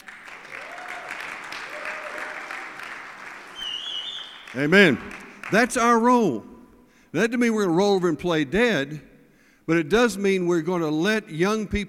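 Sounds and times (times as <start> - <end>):
audience applauding: 0.0 - 5.7
speech: 4.5 - 6.5, 7.1 - 9.1, 9.7 - 11.8.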